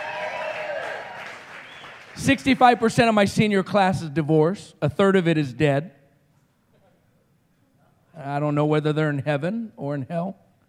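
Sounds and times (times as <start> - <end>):
whooping voices: 0.0 - 1.9
crowd applause: 0.0 - 2.8
speech: 2.2 - 6.0, 8.2 - 10.4.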